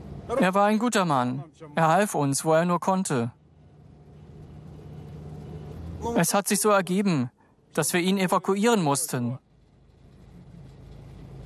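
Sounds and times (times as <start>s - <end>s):
car driving off with engine rumble: 0.0s - 0.4s, 3.2s - 6.2s, 9.4s - 11.4s
speech: 0.3s - 3.4s, 6.0s - 9.4s.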